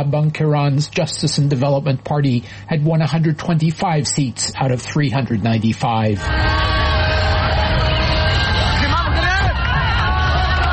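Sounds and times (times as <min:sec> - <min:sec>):
speech: 0:00.0 - 0:07.8
street crowd shouting and chattering in Rabat: 0:05.9 - 0:10.7
car horns blaring in the streets of Rabat: 0:06.3 - 0:09.6.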